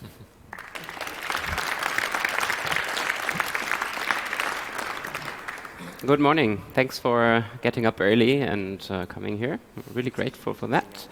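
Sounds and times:
audience applause: 0.5s - 6.6s
speech: 6.0s - 11.0s.

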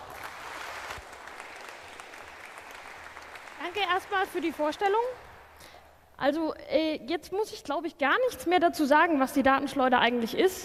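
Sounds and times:
audience applause: 0.0s - 5.6s
speech: 3.7s - 5.3s, 6.2s - 10.6s.

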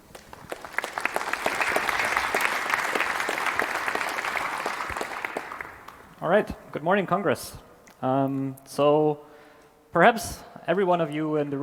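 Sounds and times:
audience applause: 0.0s - 6.2s
speech: 6.2s - 9.3s, 10.0s - 11.6s.

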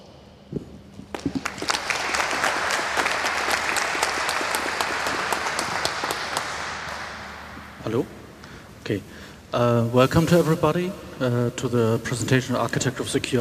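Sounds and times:
audience applause: 1.2s - 7.8s
speech: 7.9s - 8.1s, 8.9s - 13.3s.

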